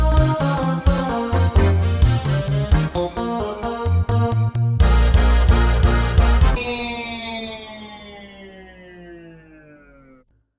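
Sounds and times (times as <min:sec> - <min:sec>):
blues music: 0:00.0 - 0:06.6.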